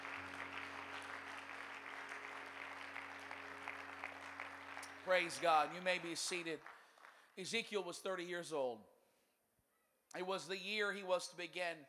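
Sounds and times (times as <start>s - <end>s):
audience clapping hands: 0.0s - 7.8s
speech: 5.0s - 6.8s, 7.4s - 8.9s, 10.1s - 11.8s.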